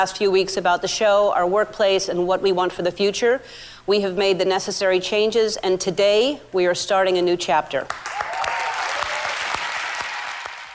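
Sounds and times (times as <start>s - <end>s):
speech: 0.0s - 8.3s
virtual studio audience applause on a TV show: 7.9s - 10.7s.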